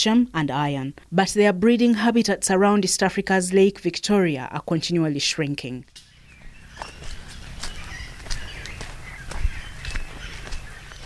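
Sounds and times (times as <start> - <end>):
speech: 0.0 - 6.0
footsteps walking through a forest undergrowth: 5.9 - 11.0
faint bird chirps: 6.0 - 11.0.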